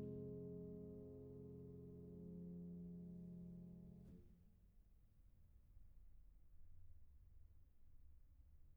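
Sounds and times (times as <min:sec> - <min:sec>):
etudes in F minor: 0:00.0 - 0:04.1.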